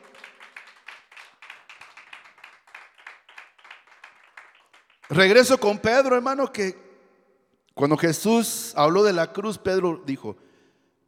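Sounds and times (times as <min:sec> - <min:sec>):
audience clapping hands in a rhythmic beat: 0:00.0 - 0:05.7
speech: 0:05.1 - 0:06.8, 0:07.8 - 0:10.5.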